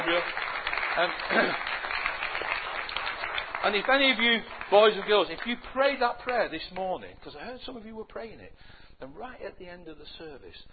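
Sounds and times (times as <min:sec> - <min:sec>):
audience clapping: 0:00.0 - 0:07.0
speech: 0:00.1 - 0:01.8, 0:03.6 - 0:10.7.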